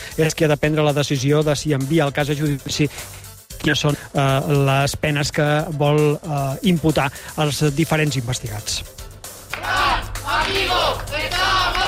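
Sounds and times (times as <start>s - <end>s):
speech: 0.2s - 9.7s
crowd protesting outside courthouse: 9.5s - 11.8s.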